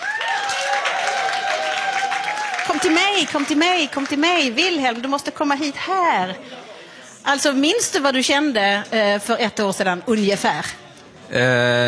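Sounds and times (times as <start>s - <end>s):
audience applause: 0.0s - 5.1s
speech: 2.8s - 6.6s, 7.2s - 11.8s.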